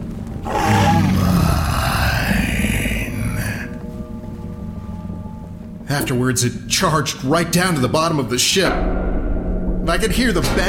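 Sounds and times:
creature growling: 0.4 - 3.8
speech: 5.9 - 9.1, 9.9 - 10.6.

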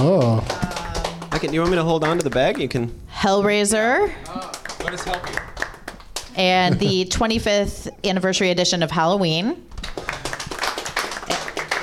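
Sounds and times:
audience clapping: 0.0 - 2.9, 3.9 - 6.9, 9.7 - 11.8
speech: 1.4 - 5.5, 6.4 - 9.7.

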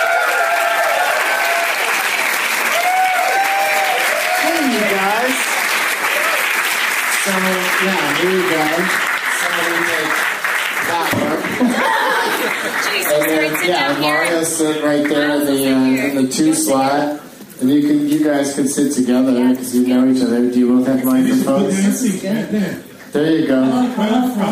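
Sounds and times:
audience whooping: 0.0 - 4.9
live show audience clapping: 0.0 - 16.1
speech: 7.3 - 9.7, 12.6 - 24.4
audience laughter: 11.5 - 12.8.

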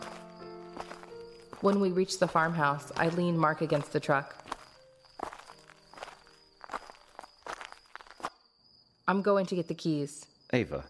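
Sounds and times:
footsteps walking up to a door: 0.0 - 8.3
speech: 1.6 - 4.4, 9.1 - 10.8.

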